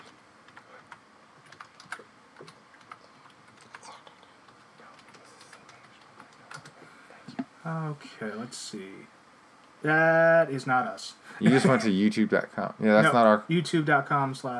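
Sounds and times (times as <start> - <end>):
computer keyboard typing: 0.0 - 6.8
speech: 7.7 - 9.2, 9.8 - 14.5.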